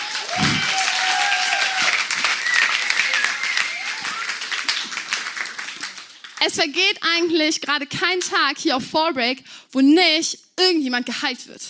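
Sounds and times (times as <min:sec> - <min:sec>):
people cheering: 0:00.0 - 0:06.4
audience applause: 0:00.0 - 0:06.7
speech: 0:06.4 - 0:11.6.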